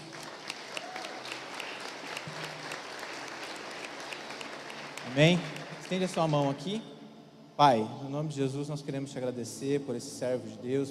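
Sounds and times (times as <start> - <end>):
audience applause: 0.0 - 6.7
speech: 5.1 - 6.9, 7.6 - 10.8.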